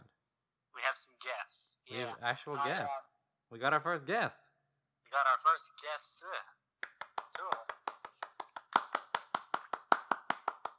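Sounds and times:
speech: 1.0s - 4.5s, 5.1s - 6.6s
hand clapping: 6.8s - 10.7s.

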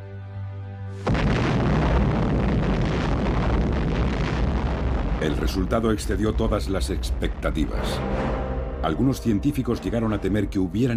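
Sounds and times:
first atomic bomb detonation: 1.0s - 9.0s
speech: 5.2s - 10.9s.

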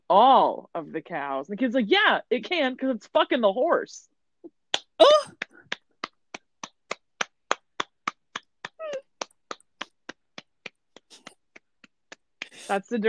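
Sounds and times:
speech: 0.1s - 5.4s, 12.7s - 13.0s
person clapping hands: 4.8s - 12.6s
brief high-pitched squeaky vocal sound: 8.6s - 9.3s.

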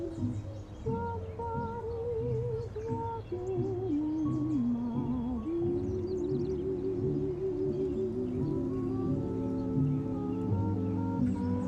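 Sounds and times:
birds singing: 0.0s - 11.6s
summer oldies playing in another room: 0.0s - 11.6s
cars passing: 5.9s - 11.6s.

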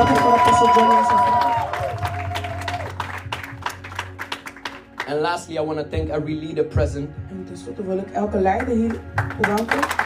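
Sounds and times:
speech: 0.0s - 0.9s, 5.3s - 10.0s
people clapping: 0.0s - 5.6s, 8.6s - 10.0s.

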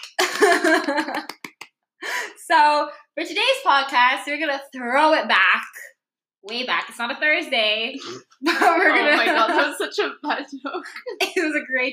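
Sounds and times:
clapping: 0.0s - 1.6s
speech: 0.7s - 1.4s, 2.5s - 11.9s
laughter: 8.0s - 9.8s.

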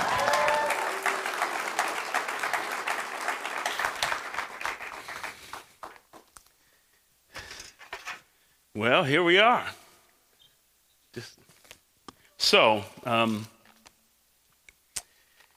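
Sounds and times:
church congregation clapping for a preacher: 0.0s - 6.3s
speech: 8.8s - 9.8s, 11.2s - 11.4s, 12.5s - 13.6s.

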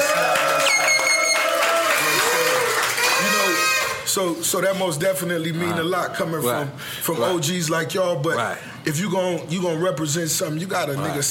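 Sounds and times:
applause: 0.0s - 4.0s
crowd cheering with whoops and shouts: 0.0s - 4.1s
speech: 4.2s - 11.2s.

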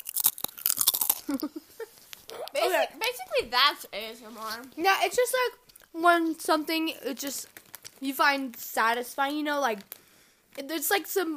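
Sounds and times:
chewing chips: 0.0s - 2.6s
chips crunching: 0.0s - 3.2s, 7.3s - 8.1s
speech: 1.3s - 10.0s, 10.6s - 11.3s.

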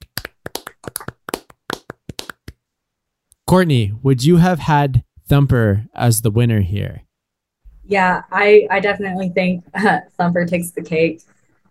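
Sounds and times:
hosts clapping: 0.0s - 2.6s
speech: 3.5s - 7.0s, 7.9s - 11.4s.

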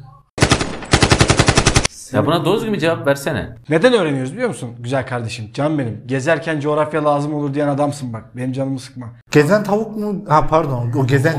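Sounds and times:
automatic gunfire sound effect: 0.4s - 1.9s
speech: 2.1s - 11.3s.

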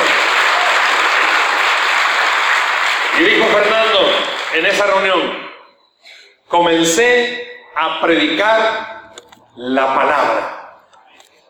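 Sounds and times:
crowd applauding: 0.0s - 5.0s
speech: 4.6s - 5.4s, 6.5s - 8.9s, 9.6s - 10.5s.

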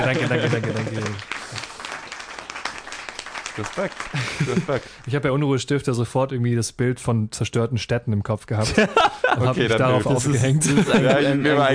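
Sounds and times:
laughter: 0.0s - 1.3s, 4.1s - 5.0s, 8.6s - 11.7s
speech: 0.0s - 1.6s, 3.6s - 11.7s
applause: 0.0s - 5.1s.

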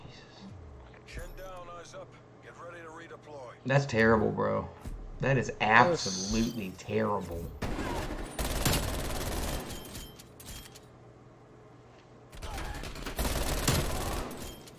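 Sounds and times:
speech: 1.8s - 7.6s
automatic gunfire in a video game from a 75-round magazine weapon: 7.6s - 9.7s, 12.4s - 14.7s.

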